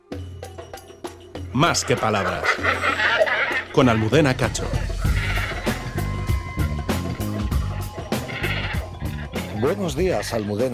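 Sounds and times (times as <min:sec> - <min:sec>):
speech: 0:01.6 - 0:04.9, 0:09.6 - 0:10.7
great cormorant guttural grunting calls: 0:01.6 - 0:10.7.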